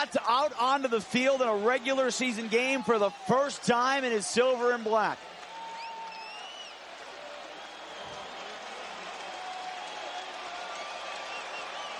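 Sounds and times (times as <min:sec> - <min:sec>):
speech: 0:00.0 - 0:05.4
stadium crowd cheering: 0:00.0 - 0:11.9
whistles and shouts: 0:05.5 - 0:06.8, 0:07.4 - 0:08.4, 0:09.8 - 0:11.9.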